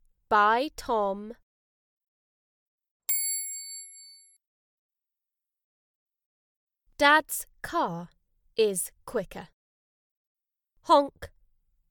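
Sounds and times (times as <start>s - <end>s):
speech: 0.3s - 1.4s, 7.0s - 9.6s, 10.9s - 11.4s
bicycle bell ringing: 3.1s - 4.4s.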